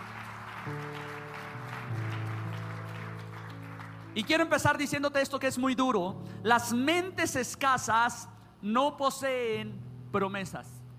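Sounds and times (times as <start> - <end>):
audience applause: 0.0 - 4.3
speech: 4.2 - 10.8.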